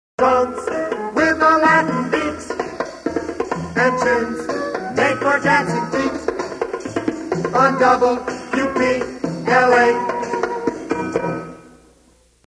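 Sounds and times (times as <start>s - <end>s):
Latin beat: 0.2s - 11.6s.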